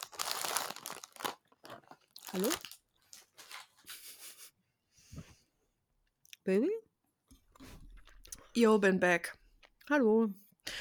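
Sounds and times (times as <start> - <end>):
crunchy snack being nibbled and chewed: 0.0 - 2.8
speech: 2.3 - 2.7, 6.4 - 6.8, 8.6 - 10.4.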